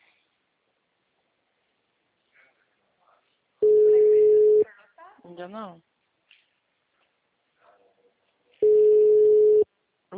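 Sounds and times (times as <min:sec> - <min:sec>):
faint hiss: 0:00.0 - 0:08.7
telephone line tone: 0:03.6 - 0:04.6, 0:08.6 - 0:09.6
speech: 0:05.3 - 0:05.9.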